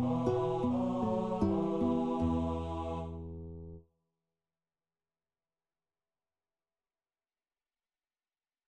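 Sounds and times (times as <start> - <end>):
guitar: 0.0 - 3.8.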